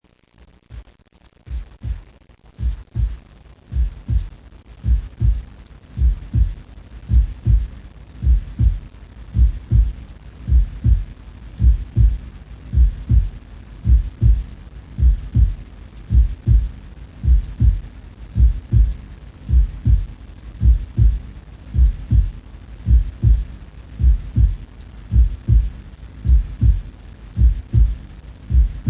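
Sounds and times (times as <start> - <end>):
heartbeat: 1.5 - 28.8.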